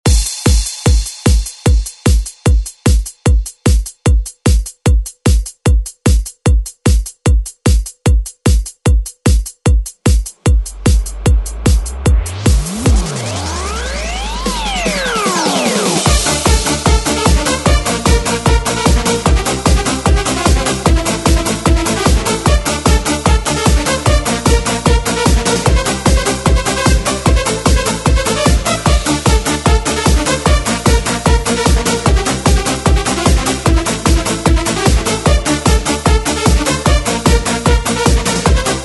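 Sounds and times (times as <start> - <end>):
90s drum beat: 0.0 - 38.8.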